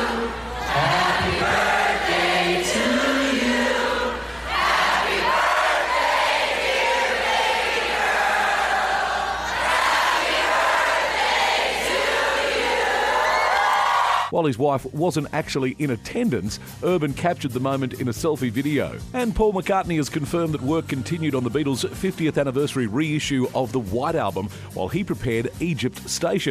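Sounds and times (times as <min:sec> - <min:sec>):
arena crowd singing a cappella: 0:00.0 - 0:13.4
speech: 0:14.4 - 0:26.4.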